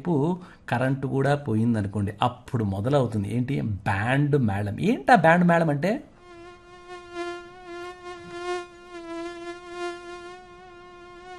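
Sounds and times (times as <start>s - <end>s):
speech: 0.0s - 6.1s
mosquitoes buzzing by the ear: 6.1s - 11.3s.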